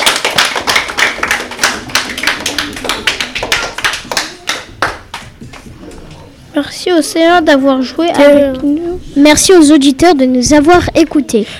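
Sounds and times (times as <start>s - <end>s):
children clapping: 0.0s - 6.2s
speech: 6.6s - 11.5s.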